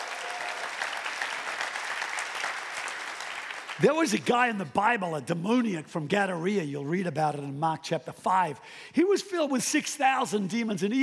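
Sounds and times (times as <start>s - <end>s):
audience clapping: 0.0s - 4.7s
speech: 3.8s - 11.0s.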